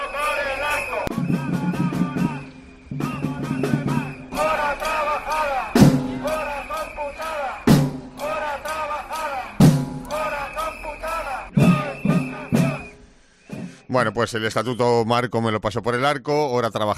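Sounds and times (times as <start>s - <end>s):
protesting doctors chanting and shouting: 0.0s - 13.8s
sharp percussive hits: 9.6s - 10.2s
speech: 14.0s - 16.9s.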